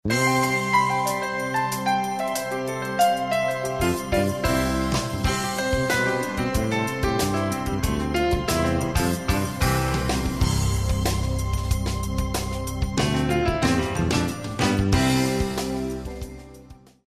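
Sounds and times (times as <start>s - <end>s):
switchboard telephone hold music: 0.0s - 16.6s.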